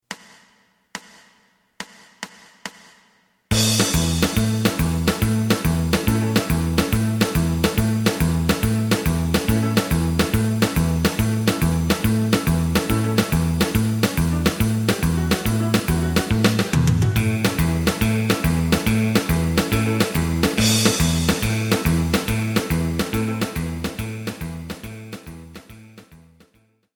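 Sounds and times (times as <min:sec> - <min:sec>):
lead melody: 0:03.5 - 0:25.9.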